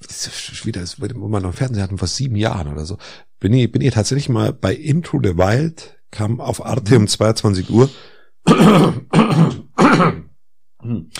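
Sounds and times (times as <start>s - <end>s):
speech: 0.2s - 11.1s
throat clearing: 8.5s - 11.1s.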